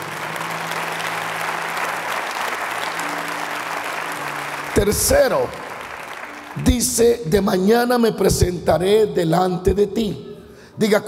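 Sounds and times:
audience applause: 0.0s - 7.3s
speech: 4.8s - 5.6s, 6.6s - 11.0s.

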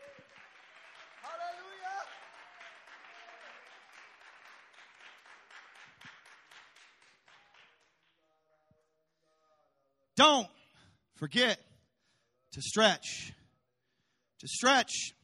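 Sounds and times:
audience clapping hands: 0.0s - 8.3s
speech: 11.2s - 11.6s, 12.5s - 13.4s, 14.4s - 15.2s.

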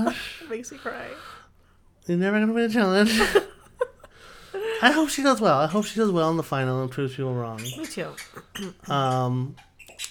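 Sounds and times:
speech: 0.1s - 1.4s, 2.0s - 3.5s, 4.8s - 10.0s
squeaky toy squeaking: 7.6s - 8.7s.

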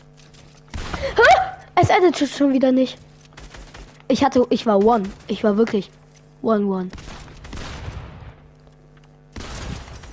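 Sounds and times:
speech: 1.9s - 3.1s, 4.1s - 7.1s
rapid video game gunfire in a one-versus-one match: 3.1s - 6.2s, 6.8s - 10.1s.

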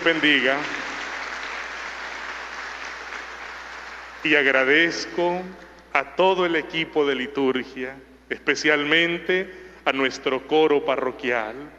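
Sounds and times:
speech: 0.0s - 0.8s, 4.2s - 11.7s
audience applauding: 0.0s - 4.8s.

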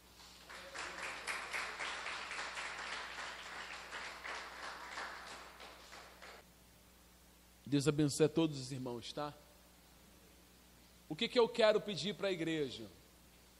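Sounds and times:
audience applause: 0.4s - 6.4s
speech: 7.7s - 9.5s, 11.1s - 13.0s.

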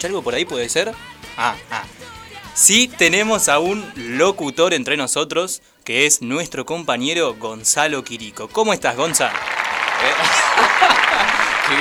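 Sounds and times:
speech: 0.0s - 2.0s, 2.6s - 11.8s
laughter: 8.9s - 11.8s
group applauding: 9.0s - 11.8s.

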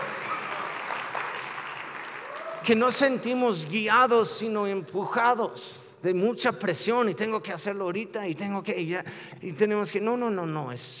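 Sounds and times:
audience applause: 0.0s - 2.8s
speech: 2.6s - 10.9s.

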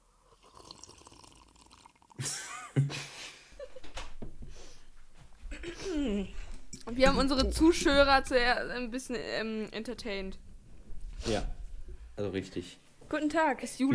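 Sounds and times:
tea pouring into a cup: 0.3s - 2.2s
speech: 2.2s - 3.0s, 7.0s - 10.5s, 11.2s - 11.6s, 12.2s - 13.9s.

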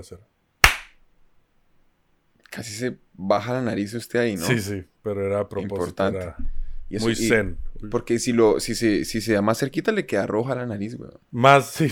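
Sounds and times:
speech: 0.0s - 0.4s, 2.6s - 11.9s
hand clap: 0.6s - 1.0s.

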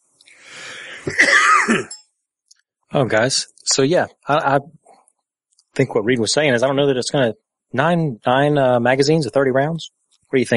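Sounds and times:
speech: 1.0s - 2.0s, 2.9s - 4.8s, 5.8s - 10.5s
coughing and throat clearing from a tickle in the throat: 1.0s - 2.1s.

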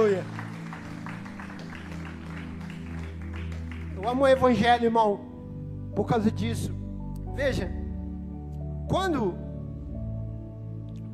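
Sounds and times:
audience applause: 0.0s - 4.3s
sustained low musical tones: 0.0s - 11.1s
speech: 4.0s - 5.3s, 6.0s - 6.8s, 7.4s - 7.8s, 8.9s - 9.4s.

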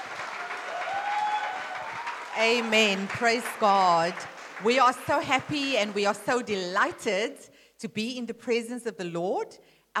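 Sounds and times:
church congregation clapping to welcome the pastor's wife: 0.0s - 7.1s
speech: 2.4s - 9.9s.

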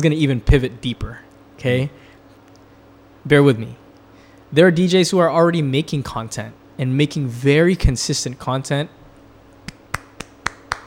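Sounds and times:
speech: 0.0s - 2.1s, 3.2s - 3.8s, 4.5s - 9.0s
person clapping hands: 9.6s - 10.8s.

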